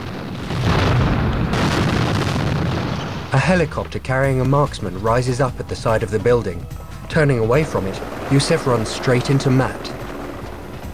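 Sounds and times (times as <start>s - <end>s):
parked vehicles exploding: 0.0s - 10.9s
speech: 3.3s - 10.0s.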